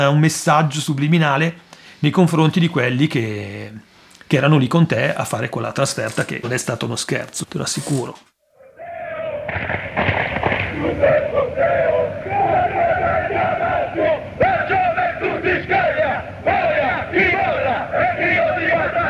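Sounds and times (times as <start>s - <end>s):
speech: 0.0s - 8.4s
football fans crowd chant: 8.6s - 19.0s.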